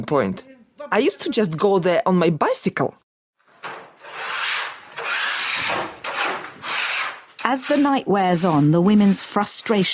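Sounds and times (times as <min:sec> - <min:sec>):
speech: 0:00.0 - 0:03.0, 0:07.5 - 0:09.9
baking trays being scraped: 0:03.4 - 0:09.9.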